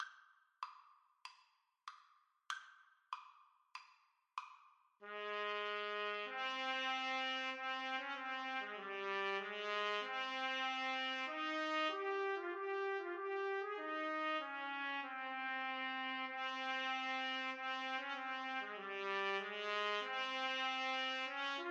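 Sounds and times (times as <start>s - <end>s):
trumpet duet: 5.0s - 21.6s.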